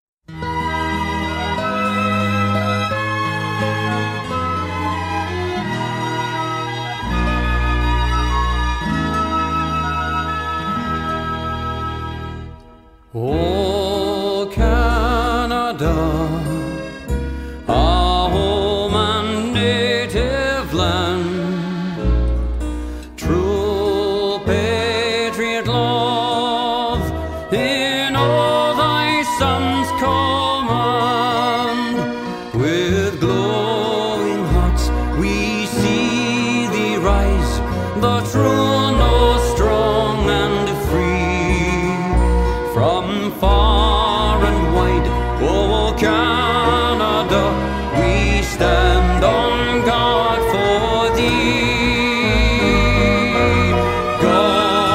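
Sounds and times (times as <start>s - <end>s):
national anthem: 0.3s - 54.9s.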